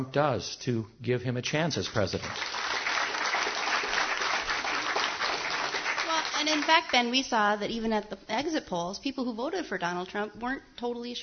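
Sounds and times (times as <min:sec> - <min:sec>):
speech: 0:00.0 - 0:02.7, 0:06.6 - 0:11.2
audience clapping: 0:01.8 - 0:07.2.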